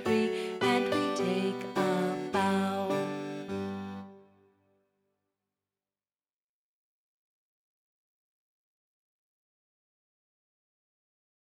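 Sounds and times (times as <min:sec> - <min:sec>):
classical minuet in G major: 0:00.0 - 0:04.3.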